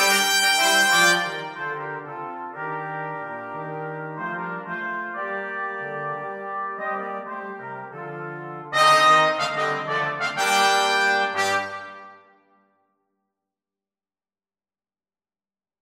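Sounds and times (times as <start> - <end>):
brass quartet playing: 0.0 - 12.4.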